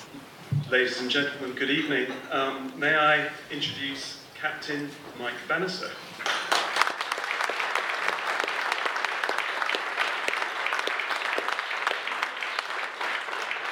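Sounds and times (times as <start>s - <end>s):
speech: 0.7s - 6.0s
round of applause: 6.2s - 13.7s.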